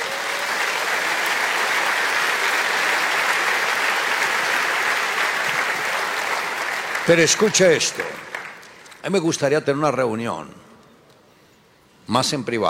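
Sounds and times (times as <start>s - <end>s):
audience applause: 0.0s - 9.0s
speech: 7.1s - 8.3s, 9.0s - 10.7s, 12.1s - 12.6s.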